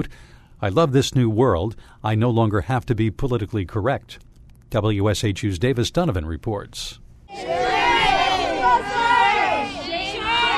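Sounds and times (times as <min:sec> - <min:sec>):
speech: 0:00.0 - 0:07.6
small crowd of protesters yelling and shouting: 0:07.3 - 0:10.5.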